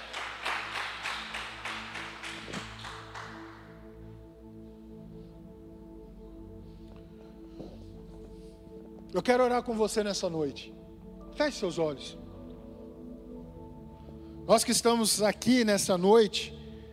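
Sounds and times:
audience applauding: 0.0 - 3.7
speech: 9.1 - 12.2, 14.5 - 16.6.

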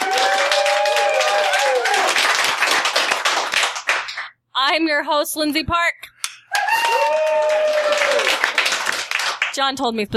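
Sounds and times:
hands clapping: 0.0 - 4.4, 6.2 - 9.6
speech: 4.7 - 6.0, 9.6 - 10.1.

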